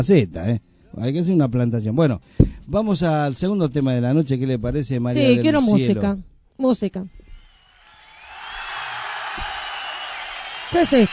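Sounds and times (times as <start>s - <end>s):
speech: 0.0s - 7.2s, 10.7s - 11.1s
crowd applauding: 7.5s - 11.1s.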